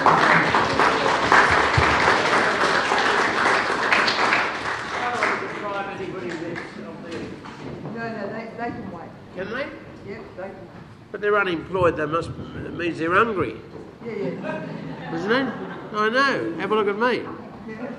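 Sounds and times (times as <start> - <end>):
audience applause: 0.0 - 6.9
speech: 11.2 - 13.7, 14.3 - 17.9
laughter: 14.0 - 16.6, 17.5 - 17.9.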